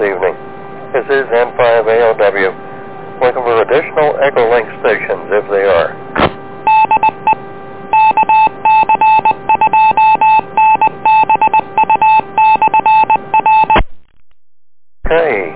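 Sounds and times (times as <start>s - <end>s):
speech: 0.0s - 0.4s, 1.0s - 6.3s
touch-tone dialing beeps placing an EchoLink call on an amateur radio net: 6.7s - 7.4s, 8.0s - 13.8s.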